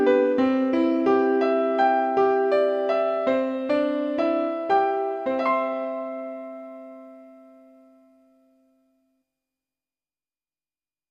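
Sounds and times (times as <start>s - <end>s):
solo piano: 0.0s - 8.8s.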